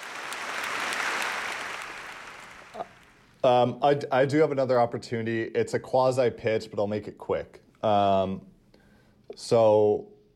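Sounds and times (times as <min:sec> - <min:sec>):
crowd applause: 0:00.0 - 0:03.2
speech: 0:03.4 - 0:08.5, 0:09.3 - 0:10.1.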